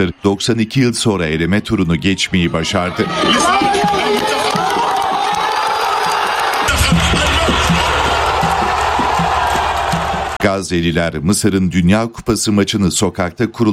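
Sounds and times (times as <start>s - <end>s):
speech: 0.0s - 4.3s, 10.5s - 13.7s
crowd in a Gaza street cheering Egypt's World Cup win: 0.0s - 10.5s.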